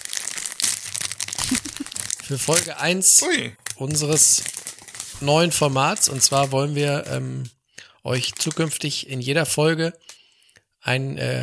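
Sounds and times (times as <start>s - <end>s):
packaging rustling and crinkling: 0.0s - 2.9s, 3.6s - 7.2s, 8.1s - 8.8s
speech: 2.3s - 4.6s, 5.2s - 10.2s, 10.8s - 11.4s.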